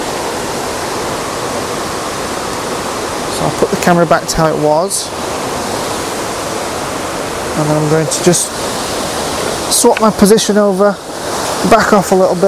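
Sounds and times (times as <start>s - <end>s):
swirling stream water: 0.0s - 12.4s
speech: 3.9s - 5.4s, 7.6s - 8.7s, 9.8s - 12.4s.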